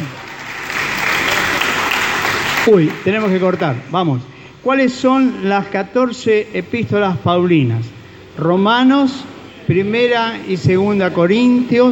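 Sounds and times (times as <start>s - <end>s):
audience applauding: 0.0s - 3.7s
speech: 2.6s - 11.9s.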